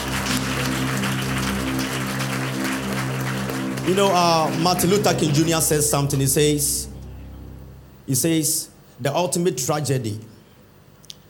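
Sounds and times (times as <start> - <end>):
audience clapping hands: 0.0 - 6.3
speech: 3.9 - 6.9, 8.1 - 10.3.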